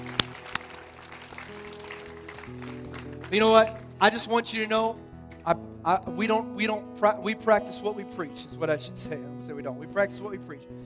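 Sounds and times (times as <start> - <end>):
audience clapping: 0.0 - 4.0
speech: 3.3 - 10.8.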